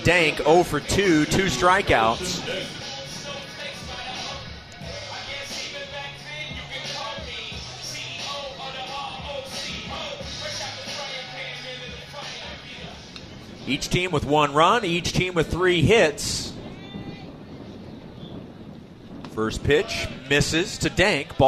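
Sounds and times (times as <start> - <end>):
speech: 0.0 - 2.8, 13.7 - 16.4, 19.4 - 21.4
wind buffeting the crowd microphone at a baseball game: 0.0 - 10.8, 11.9 - 21.4.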